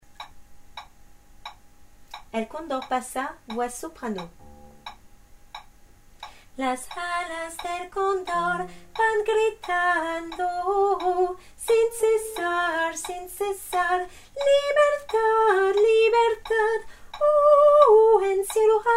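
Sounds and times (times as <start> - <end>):
soprano singing: 6.6 - 18.9.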